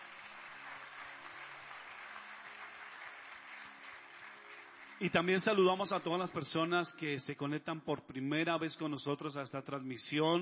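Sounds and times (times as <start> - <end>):
audience applause: 0.0 - 6.3
speech: 5.0 - 10.4.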